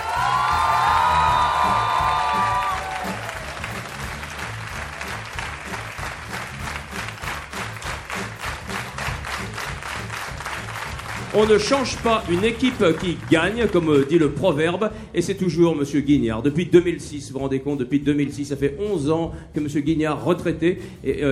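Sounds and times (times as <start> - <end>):
school gathering applauding and cheering: 0.0 - 14.3
rhythmic clapping in unison: 0.0 - 14.5
speech: 11.4 - 21.3.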